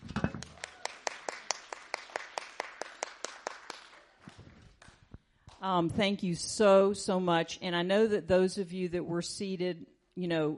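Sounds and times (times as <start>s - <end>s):
crowd applauding: 0.0s - 5.0s
speech: 5.6s - 10.5s.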